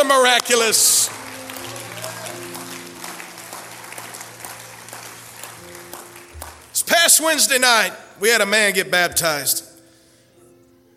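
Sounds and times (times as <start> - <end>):
audience clapping hands: 0.0 - 7.7
speech: 0.1 - 1.2, 7.0 - 9.7.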